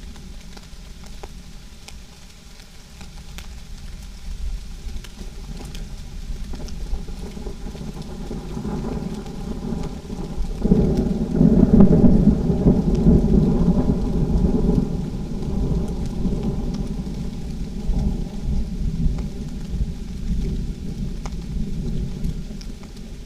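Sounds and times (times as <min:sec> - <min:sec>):
thunder shower: 0:05.4 - 0:23.2.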